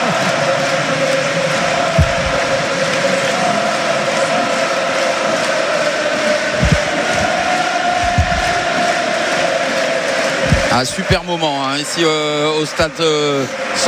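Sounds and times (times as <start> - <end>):
supporters' crowd roar at San Mamés stadium: 0.0 - 13.8
dull low thumps: 1.8 - 2.7, 6.5 - 8.8, 10.4 - 11.2
speech: 10.8 - 13.8.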